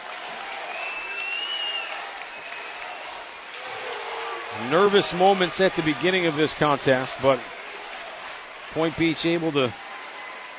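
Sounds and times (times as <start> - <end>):
crowd applauding: 0.0 - 10.5
faint whistle: 0.6 - 3.0
speech: 4.6 - 7.6, 8.7 - 9.8.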